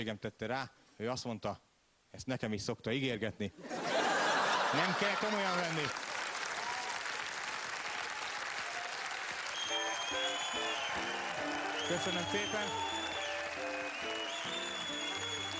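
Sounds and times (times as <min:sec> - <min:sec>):
speech: 0:00.0 - 0:03.8, 0:04.7 - 0:06.0, 0:11.9 - 0:13.0
laughter: 0:03.6 - 0:05.8
audience applause: 0:04.6 - 0:15.5.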